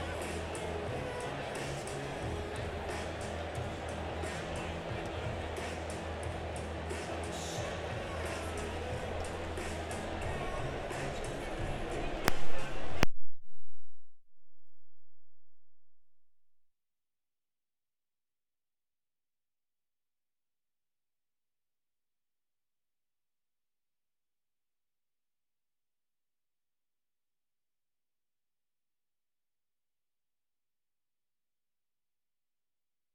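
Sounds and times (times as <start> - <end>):
crowd: 0.0 - 13.0.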